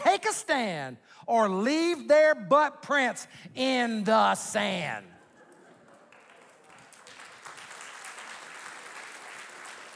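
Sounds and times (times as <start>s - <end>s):
speech: 0.3s - 5.1s
crowd applauding: 5.4s - 9.9s.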